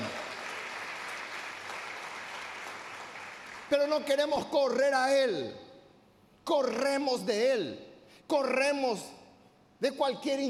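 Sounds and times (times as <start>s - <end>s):
audience applause: 0.0s - 3.7s
speech: 3.7s - 5.6s, 6.4s - 9.2s, 9.8s - 10.4s.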